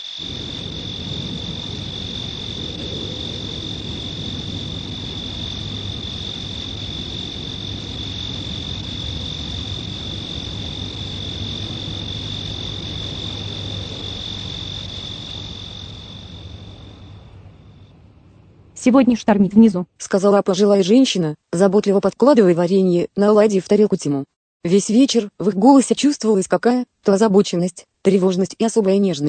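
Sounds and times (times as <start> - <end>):
cicadas chirping at night: 0.0 - 17.9
soft constant low rumble: 0.2 - 19.8
speech: 18.8 - 29.2.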